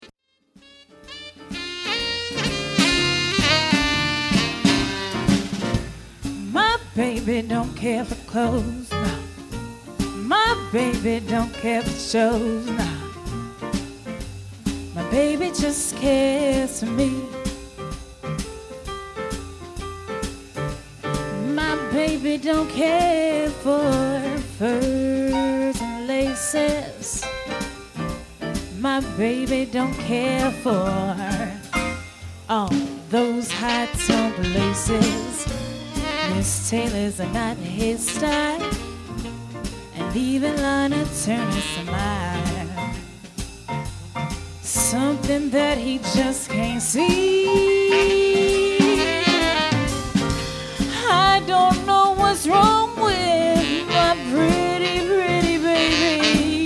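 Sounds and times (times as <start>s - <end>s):
swing band combo playing: 0.5s - 56.6s
female vocalist singing with swing band: 6.4s - 9.4s, 10.1s - 13.4s, 15.0s - 17.6s, 21.4s - 27.3s, 28.7s - 31.9s, 32.5s - 39.0s, 39.9s - 43.1s, 44.6s - 56.6s.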